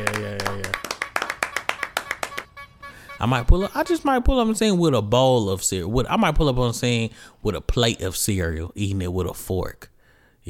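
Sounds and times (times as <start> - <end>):
hand claps: 0.0 - 2.6
speech: 3.2 - 10.4.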